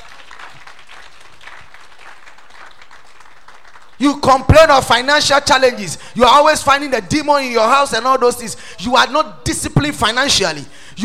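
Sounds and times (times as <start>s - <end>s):
audience clapping: 0.0s - 4.5s
speech: 4.0s - 11.0s.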